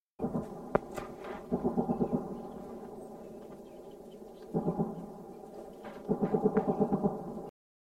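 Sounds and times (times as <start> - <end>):
machine gun firing: 1.4 - 2.6, 4.5 - 5.1, 6.0 - 7.4.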